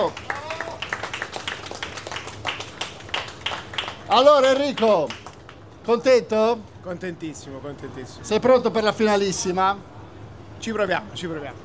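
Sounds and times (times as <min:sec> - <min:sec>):
audience applause: 0:00.0 - 0:05.6
speech: 0:04.1 - 0:05.2, 0:05.8 - 0:09.9, 0:10.6 - 0:11.6.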